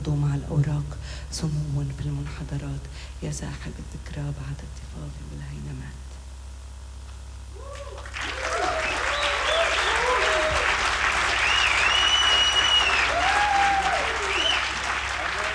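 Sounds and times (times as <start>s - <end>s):
speech: 0.0s - 6.1s
faint cheers and voices: 7.6s - 10.8s, 12.8s - 14.6s
concert audience applause: 7.6s - 15.5s.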